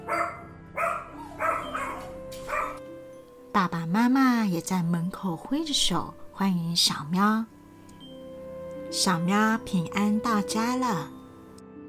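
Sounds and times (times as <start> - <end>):
small dog barking: 0.0 - 2.8
speech: 3.6 - 7.6, 9.0 - 11.2.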